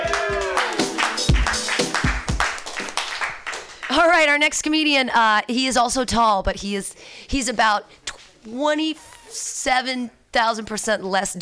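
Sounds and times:
audience clapping: 0.0s - 4.2s
speech: 4.0s - 11.3s.

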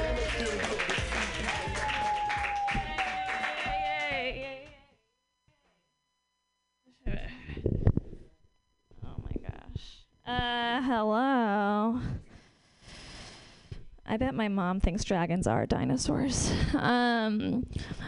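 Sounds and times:
audience clapping and cheering for a comedian at a stand-up show: 0.0s - 4.8s
speech: 10.3s - 12.1s, 14.1s - 18.0s.

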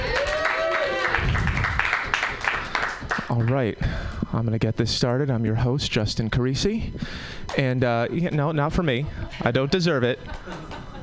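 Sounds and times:
voices whooping or calling out: 0.0s - 1.4s
audience applause: 0.0s - 3.6s
speech: 3.4s - 10.7s
laughter: 8.1s - 11.0s.

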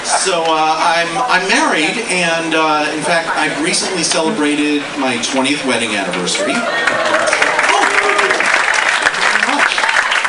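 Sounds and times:
speech: 0.2s - 7.5s
voices cheering: 6.3s - 10.0s
audience applause: 6.4s - 10.2s.

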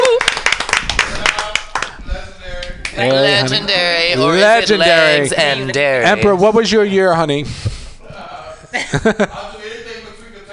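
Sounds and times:
audience round of applause: 0.0s - 2.0s
speech: 3.0s - 7.7s, 8.7s - 9.6s
laughter: 8.5s - 9.8s.

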